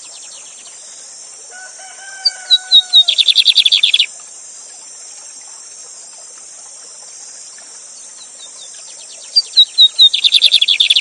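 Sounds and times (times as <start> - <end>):
lined seedeater song: 2.5 - 4.1, 9.0 - 10.9.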